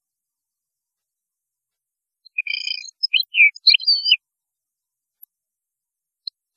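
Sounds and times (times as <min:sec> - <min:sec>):
European goldfinch twittering chirps: 0:02.3 - 0:04.2.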